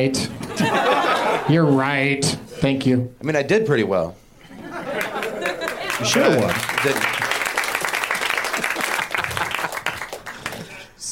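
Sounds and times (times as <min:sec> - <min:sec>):
speech: 0:00.0 - 0:00.8, 0:01.4 - 0:04.2, 0:06.0 - 0:07.1
laughter: 0:00.4 - 0:01.6, 0:04.4 - 0:07.5, 0:08.3 - 0:10.9
audience applause: 0:04.8 - 0:10.9.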